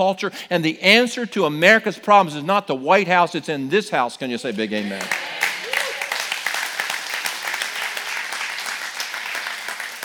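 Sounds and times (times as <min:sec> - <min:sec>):
speech: 0:00.0 - 0:05.4
audience clapping: 0:04.7 - 0:10.0.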